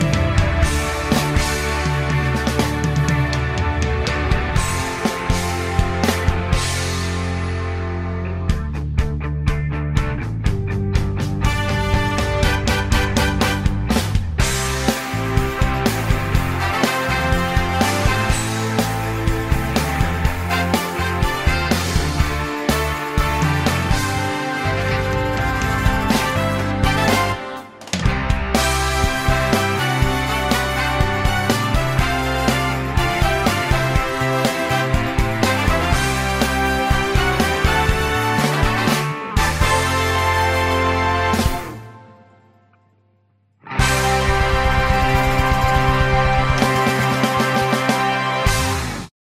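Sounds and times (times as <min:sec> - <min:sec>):
instrumental music: 0:00.0 - 0:49.1.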